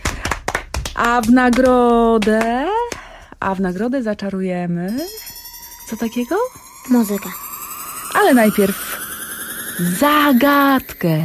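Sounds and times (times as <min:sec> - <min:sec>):
group applause: 0:00.0 - 0:03.1
speech: 0:01.0 - 0:02.8, 0:03.4 - 0:05.2, 0:05.9 - 0:07.4, 0:08.1 - 0:09.0, 0:09.8 - 0:11.2.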